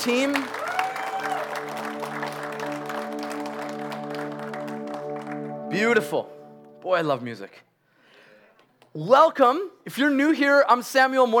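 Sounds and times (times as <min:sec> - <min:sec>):
speech: 0:00.0 - 0:00.6, 0:05.8 - 0:07.7, 0:08.9 - 0:11.3
audience applause for the band: 0:00.0 - 0:05.6.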